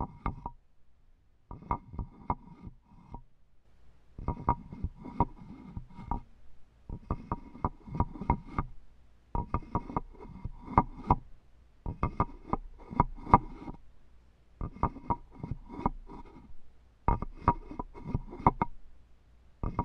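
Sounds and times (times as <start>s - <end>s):
wood tapping and rubbing: 0.0s - 0.6s, 4.2s - 6.3s, 6.9s - 8.7s, 9.4s - 11.2s, 11.9s - 13.8s, 14.6s - 16.5s, 17.1s - 18.8s, 19.6s - 19.8s
faint low hum: 0.0s - 19.8s.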